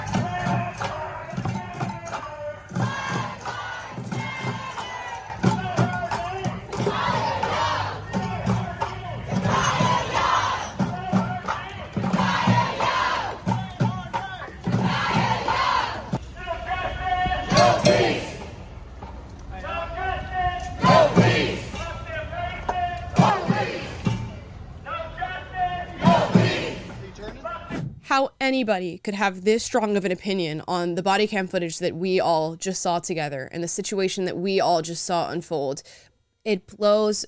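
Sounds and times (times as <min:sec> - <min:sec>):
protest crowd chanting in the street: 0:00.0 - 0:18.8, 0:19.5 - 0:27.2
speech: 0:28.2 - 0:37.2.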